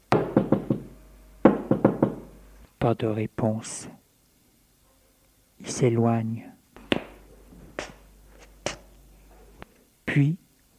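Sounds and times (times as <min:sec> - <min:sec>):
knocking on a door: 0:00.1 - 0:02.4
speech: 0:02.8 - 0:04.0, 0:05.6 - 0:06.5, 0:10.2 - 0:10.4.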